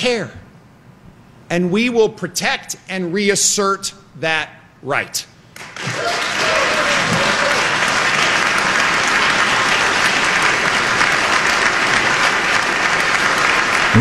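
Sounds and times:
speech: 0.0s - 0.4s, 1.5s - 5.3s
large crowd applauding in a legislative chamber: 5.6s - 13.9s.

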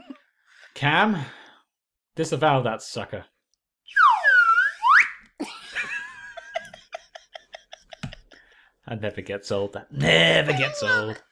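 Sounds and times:
speech: 0.8s - 1.4s, 2.2s - 3.3s, 8.9s - 11.2s
slide whistle: 3.9s - 5.2s
laughter: 5.4s - 8.4s.

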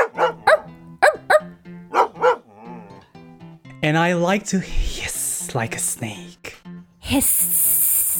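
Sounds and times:
dog barking: 0.0s - 2.8s
speech: 3.8s - 6.4s, 7.1s - 7.5s.

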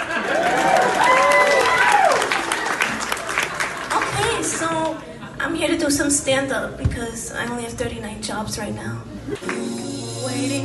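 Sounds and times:
crowd whooping at a stand-up comedy show: 0.0s - 3.4s
crowd applause at a stand-up comedy show: 0.0s - 5.0s, 9.4s - 9.8s
speech: 5.9s - 9.8s, 10.4s - 10.6s.

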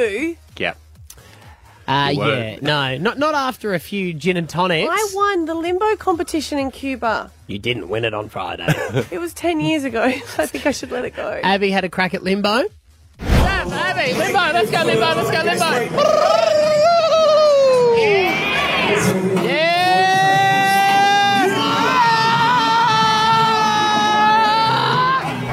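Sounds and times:
speech: 0.0s - 0.8s, 1.9s - 16.9s
people screaming as someone hits her head on the ground: 15.9s - 25.5s.

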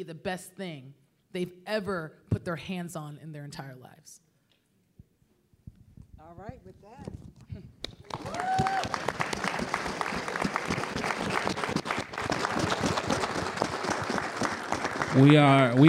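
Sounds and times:
speech: 0.0s - 4.3s, 6.2s - 9.7s, 15.1s - 15.8s
audience applause at a community talk about AI: 7.9s - 15.8s.

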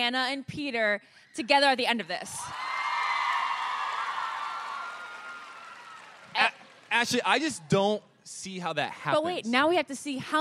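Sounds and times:
speech: 0.0s - 2.7s, 6.9s - 10.4s
studio audience clapping and cheering: 2.5s - 7.9s.

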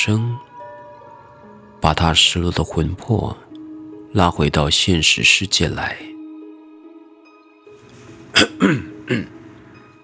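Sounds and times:
speech: 0.0s - 0.3s, 1.9s - 3.5s, 4.1s - 6.1s, 8.4s - 9.4s
coughing: 8.3s - 9.7s.

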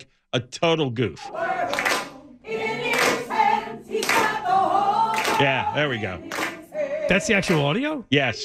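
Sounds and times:
speech: 0.0s - 2.7s, 5.4s - 6.4s, 7.1s - 8.4s
song playing: 1.4s - 7.8s
hands clapping to the beat of a song: 1.7s - 2.2s, 2.8s - 3.3s, 3.9s - 4.5s, 5.1s - 6.6s, 7.3s - 7.8s.

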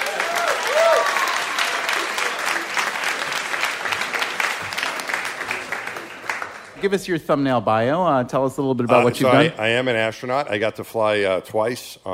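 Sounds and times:
audience applause welcoming an astronaut guest onto a comedy show: 0.0s - 6.8s
speech: 6.8s - 12.1s.

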